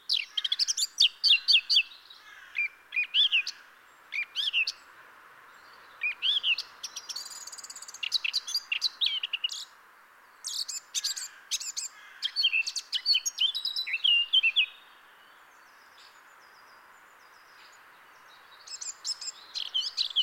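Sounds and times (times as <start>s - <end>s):
Eurasian blackcap singing: 0.0s - 4.8s, 6.0s - 9.7s, 10.4s - 14.9s, 18.4s - 20.2s.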